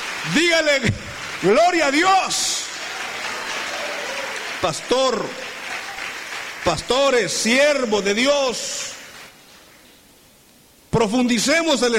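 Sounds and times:
audience applause: 0:00.0 - 0:08.1
speech: 0:00.2 - 0:02.6, 0:04.6 - 0:05.4, 0:06.6 - 0:08.9, 0:11.0 - 0:11.9.

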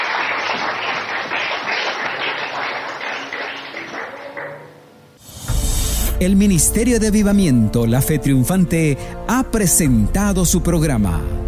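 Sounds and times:
audience applause: 0:00.0 - 0:04.8
speech: 0:06.2 - 0:11.3.

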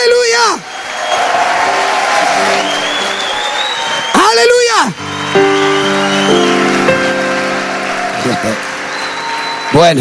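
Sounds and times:
audience applause: 0:00.6 - 0:10.0
speech: 0:09.7 - 0:10.0.

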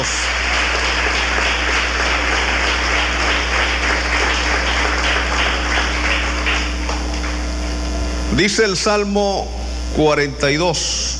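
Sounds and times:
audience applauding in welcome: 0:00.0 - 0:08.0
speech: 0:08.3 - 0:11.0.

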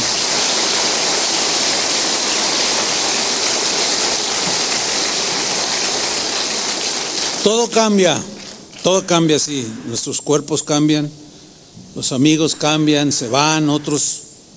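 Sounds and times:
audience applause: 0:00.0 - 0:07.7
speech: 0:07.4 - 0:11.2, 0:11.9 - 0:14.2.

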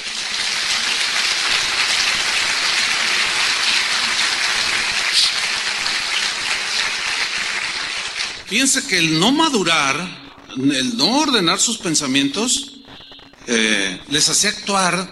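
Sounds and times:
audience clapping: 0:00.0 - 0:10.3
speech: 0:08.5 - 0:12.8, 0:13.5 - 0:15.1.

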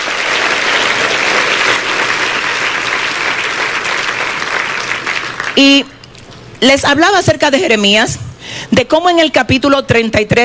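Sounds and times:
audience applause: 0:00.0 - 0:05.6
speech: 0:05.6 - 0:05.9, 0:06.6 - 0:10.4.

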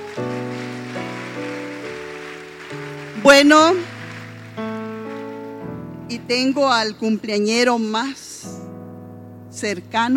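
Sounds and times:
audience applause: 0:00.0 - 0:05.6
speech: 0:03.3 - 0:03.9, 0:06.2 - 0:08.2, 0:09.6 - 0:10.1.

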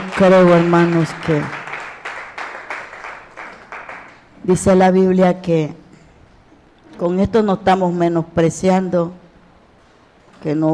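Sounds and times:
church congregation clapping during a morning service: 0:00.0 - 0:04.3
speech: 0:00.2 - 0:01.6, 0:04.5 - 0:05.8, 0:07.0 - 0:09.2, 0:10.4 - 0:10.7.

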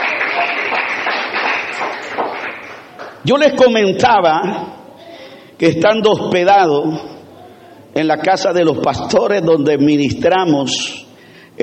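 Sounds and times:
audience applauding: 0:00.0 - 0:03.3
speech: 0:03.2 - 0:04.8, 0:05.6 - 0:07.1, 0:07.9 - 0:11.0.

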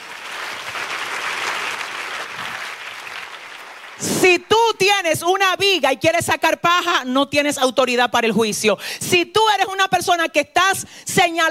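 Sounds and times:
audience applauding: 0:00.0 - 0:04.3
speech: 0:04.0 - 0:11.4.

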